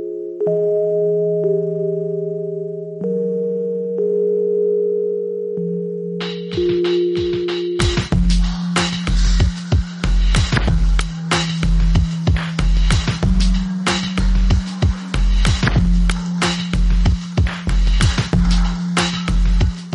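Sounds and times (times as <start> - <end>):
soft nasal-toned Rhodes electric piano chords: 0.0 - 8.2
dense electronic beat with punchy percussion: 6.2 - 19.9.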